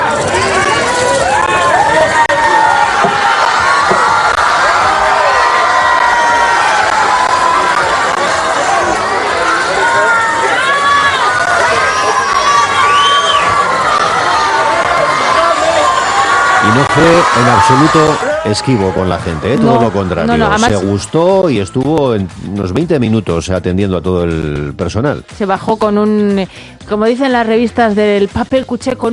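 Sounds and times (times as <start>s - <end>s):
crowd cheering hysterically at arrival: 0.0s - 21.8s
speech: 17.0s - 29.1s.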